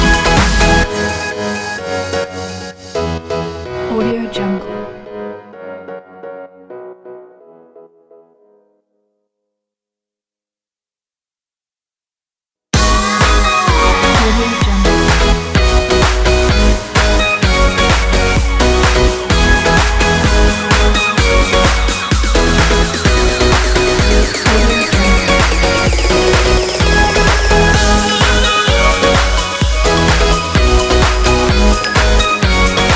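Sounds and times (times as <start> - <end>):
positive pop music: 0.0 - 6.0, 12.8 - 32.9.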